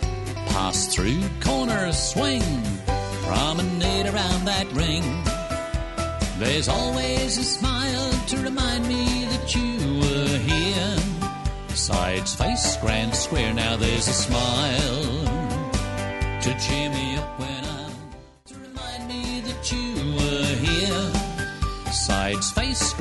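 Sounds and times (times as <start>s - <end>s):
person singing: 0.0s - 22.9s
square dance music: 0.0s - 22.9s.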